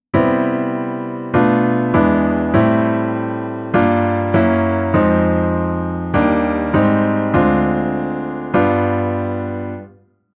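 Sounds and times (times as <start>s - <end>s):
reharmonised chord progression: 0.2s - 9.9s.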